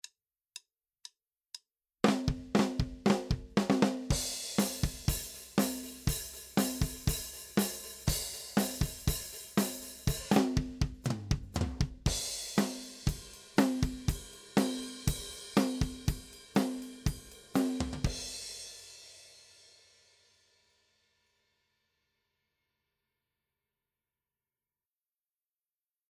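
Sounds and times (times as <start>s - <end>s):
unprocessed drumbeat recorded with a microphone: 2.0s - 18.6s.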